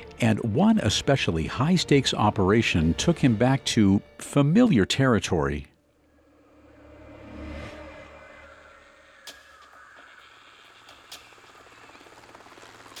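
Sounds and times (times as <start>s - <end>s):
speech: 0.2s - 5.7s
helicopter landing gently in the grass: 9.3s - 12.9s.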